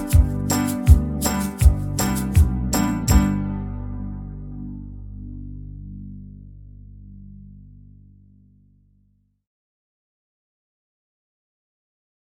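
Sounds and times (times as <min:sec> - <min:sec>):
very slow banjo backing track in the key of G: 0:00.0 - 0:03.6.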